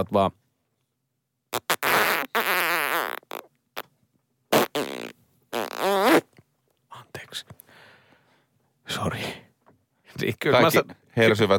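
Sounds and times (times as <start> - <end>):
speech: 0.0 - 0.4, 9.0 - 9.4, 10.2 - 11.5
farting: 1.5 - 3.9, 4.5 - 6.3.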